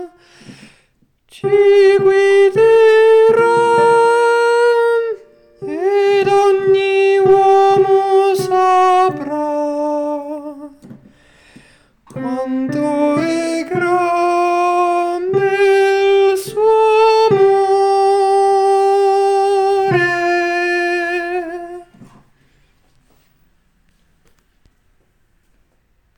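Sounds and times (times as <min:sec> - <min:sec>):
contraltos singing a lauda: 0:01.3 - 0:11.0, 0:12.1 - 0:22.0.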